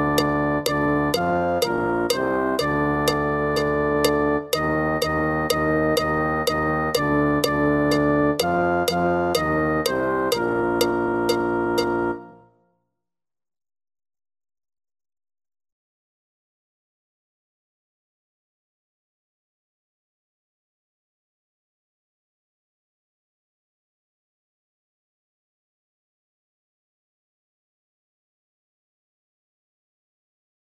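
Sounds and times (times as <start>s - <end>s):
fast song: 0.0s - 12.3s.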